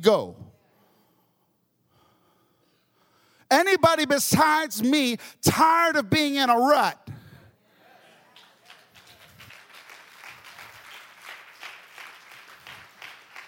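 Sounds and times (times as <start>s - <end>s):
speech: 0.0s - 0.4s, 3.5s - 7.0s
audience clapping: 8.2s - 13.4s.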